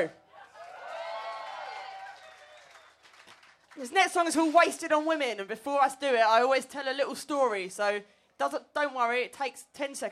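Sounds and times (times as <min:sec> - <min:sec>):
speech: 0:00.0 - 0:00.2, 0:03.8 - 0:10.0
audience applause at live show: 0:00.4 - 0:03.8.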